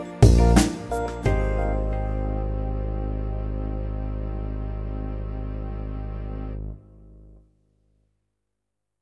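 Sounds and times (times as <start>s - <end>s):
chill-out rhythms: 0.0s - 6.7s.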